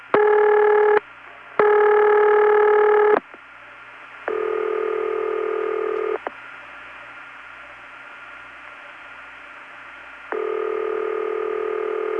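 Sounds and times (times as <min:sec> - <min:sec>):
telephone ringing in two different ring patterns: 0:00.1 - 0:01.0, 0:01.6 - 0:03.2, 0:04.3 - 0:06.2, 0:10.3 - 0:12.1.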